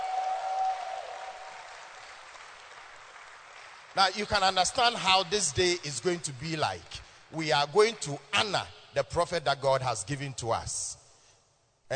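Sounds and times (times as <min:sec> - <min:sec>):
audience clapping: 0:00.0 - 0:05.4
speech: 0:04.0 - 0:11.0.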